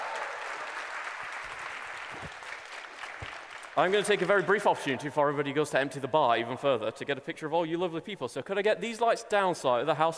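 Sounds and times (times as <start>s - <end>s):
audience applause: 0.0s - 4.5s
speech: 3.8s - 10.1s.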